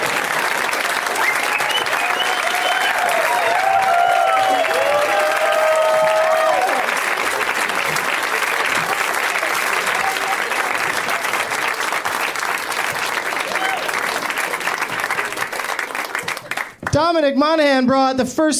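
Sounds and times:
audience applause: 0.0 - 16.9
speech: 17.1 - 18.5.

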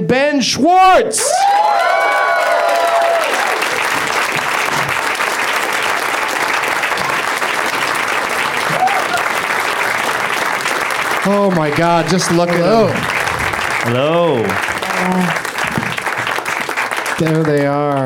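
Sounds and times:
speech: 0.1 - 2.6, 11.2 - 13.2, 13.8 - 15.4, 17.2 - 18.0
studio audience applause welcoming four guests: 1.3 - 18.0.

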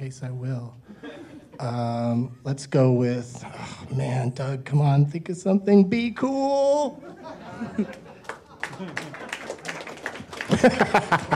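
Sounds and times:
speech: 0.0 - 8.0, 8.8 - 9.2, 10.5 - 11.3
laughter: 6.9 - 11.3
scattered clapping from a small audience: 7.8 - 11.3.

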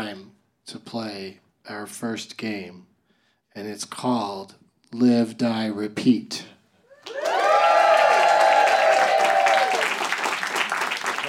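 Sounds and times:
speech: 0.1 - 2.9, 3.6 - 7.2
crowd applause: 6.9 - 11.2.

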